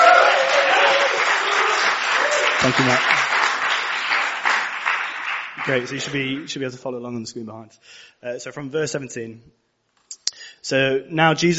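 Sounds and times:
round of applause: 0.0 - 6.6
speech: 2.6 - 3.2, 5.6 - 9.6, 10.6 - 11.5.

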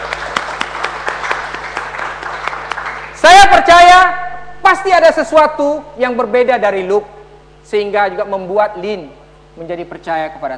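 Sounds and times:
audience applause: 0.0 - 3.2
speech: 3.2 - 10.5.

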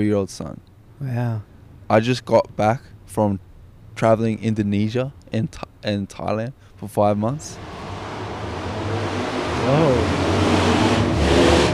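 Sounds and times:
speech: 0.0 - 7.8, 9.6 - 10.2
loud motorbike engine passing: 7.4 - 11.7.

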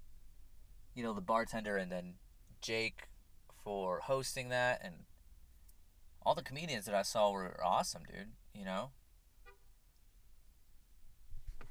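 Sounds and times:
speech: 1.0 - 5.1, 6.2 - 9.0
car horn honking: 9.4 - 9.7.

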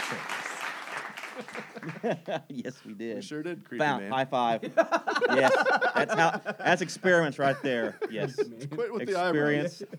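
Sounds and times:
studio audience clapping: 0.0 - 2.2
laughter: 0.0 - 2.7, 4.6 - 9.9
speech: 1.8 - 9.9.

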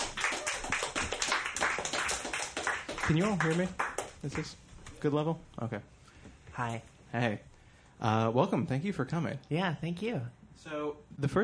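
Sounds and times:
audience clapping: 0.0 - 4.6
speech: 3.1 - 5.9, 6.6 - 11.4.

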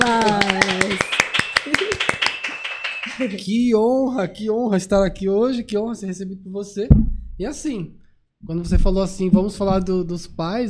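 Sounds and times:
small group clapping: 0.0 - 3.5
laughter: 1.6 - 3.6
speech: 3.2 - 10.6.

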